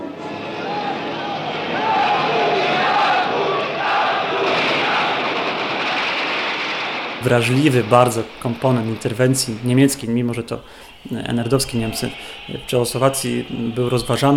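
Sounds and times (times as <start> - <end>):
large protesting crowd shouting and jeering: 0.0 - 7.2, 10.9 - 14.3
high whistles: 0.2 - 14.3
speech: 7.2 - 14.3.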